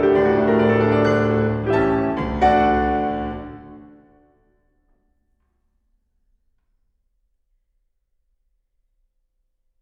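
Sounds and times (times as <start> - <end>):
prelude in D major allegro molto: 0.0 - 4.2.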